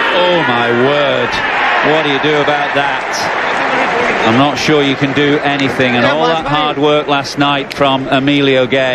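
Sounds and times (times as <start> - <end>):
cricket crowd applauding in the stands: 0.2 - 7.0
speech: 0.5 - 3.5, 4.2 - 8.9.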